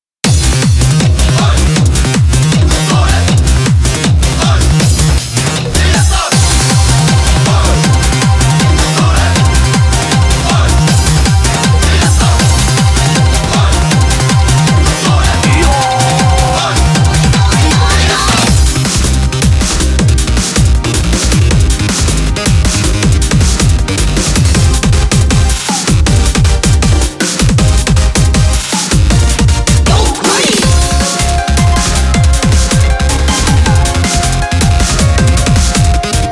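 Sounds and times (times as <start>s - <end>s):
matsuri festival instrumental music: 0.2s - 36.2s.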